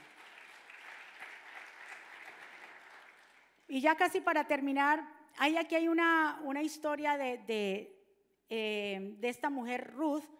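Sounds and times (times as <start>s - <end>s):
audience applauding: 0.0s - 3.7s
speech: 3.7s - 10.3s.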